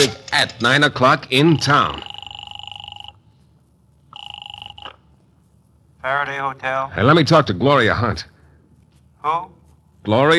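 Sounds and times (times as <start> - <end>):
speech: 0.0 - 2.1, 6.0 - 8.3, 9.2 - 10.3
telephone ringing on the other end of the line: 1.4 - 3.3, 4.1 - 5.2.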